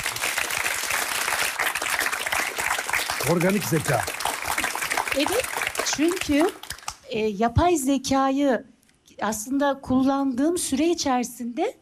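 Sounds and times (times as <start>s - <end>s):
audience applause: 0.0s - 7.0s
speech: 3.2s - 4.2s, 5.2s - 11.8s.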